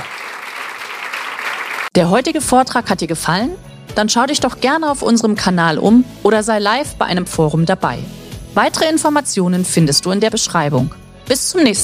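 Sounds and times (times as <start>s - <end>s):
audience applause: 0.0s - 2.0s
speech: 2.0s - 11.8s.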